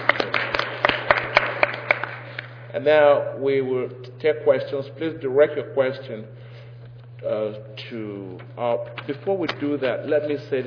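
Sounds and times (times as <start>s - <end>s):
small audience applause: 0.0s - 2.5s
speech: 2.8s - 6.4s, 7.2s - 10.6s.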